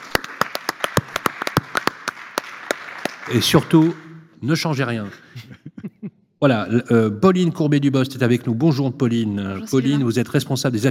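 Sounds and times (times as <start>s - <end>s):
scattered applause from a small audience: 0.0s - 4.2s
speech: 3.3s - 5.6s, 6.4s - 10.8s
laughter: 5.0s - 6.2s.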